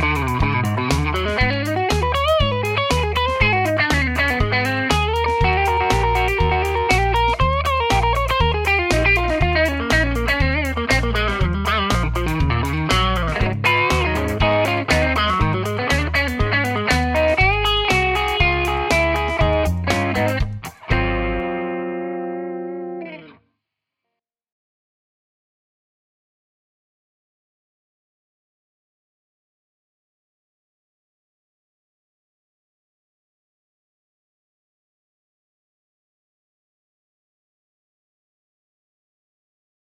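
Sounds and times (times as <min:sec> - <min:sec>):
crunch electric guitar on bridge and neck pickups: 0:00.0 - 0:23.4.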